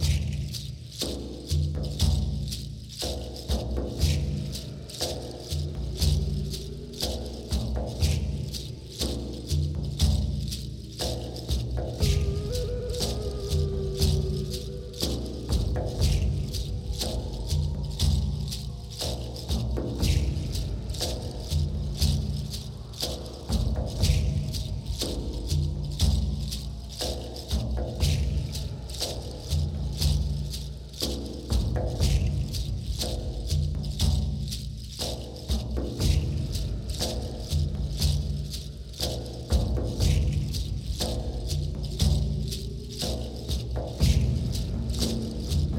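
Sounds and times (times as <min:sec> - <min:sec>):
drumming: 0:00.0 - 0:45.7.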